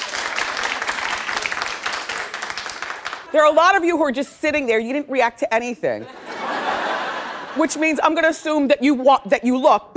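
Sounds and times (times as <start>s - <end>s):
audience clapping: 0.0s - 3.5s
speech: 3.3s - 6.2s, 7.6s - 9.9s
laughter: 6.0s - 8.0s.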